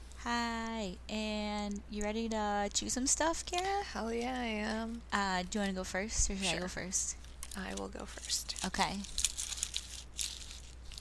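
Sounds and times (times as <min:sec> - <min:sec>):
speech: 0:00.2 - 0:09.3
snack food wrapper crinkling: 0:03.2 - 0:10.9.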